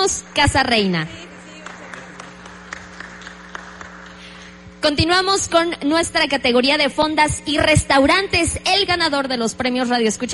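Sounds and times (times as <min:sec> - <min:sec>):
speech: 0:00.0 - 0:01.2, 0:04.8 - 0:10.3
audience applause: 0:01.2 - 0:04.5.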